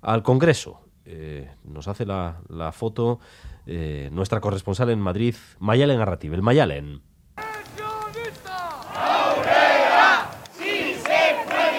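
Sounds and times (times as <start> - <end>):
speech: 0.0 - 7.1
crowd of pensioners chanting slogans: 7.6 - 11.7.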